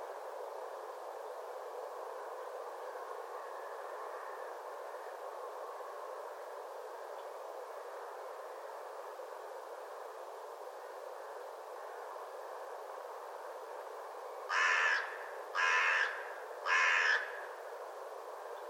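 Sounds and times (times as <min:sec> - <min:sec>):
harsh hoarse caw-like bird calls: 0:14.5 - 0:17.6.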